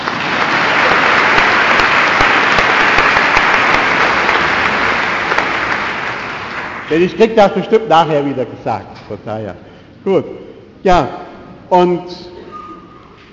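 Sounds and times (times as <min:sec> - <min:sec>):
audience applause: 0:00.0 - 0:07.1
speech: 0:06.9 - 0:12.3.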